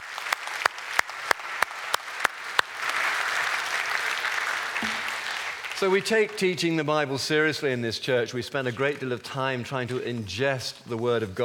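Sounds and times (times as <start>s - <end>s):
audience clapping: 0.0s - 7.1s
speech: 5.8s - 11.4s.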